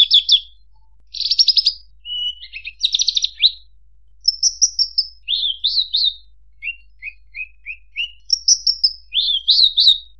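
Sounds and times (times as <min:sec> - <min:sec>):
Horsfield's bush lark singing: 0:00.0 - 0:10.1.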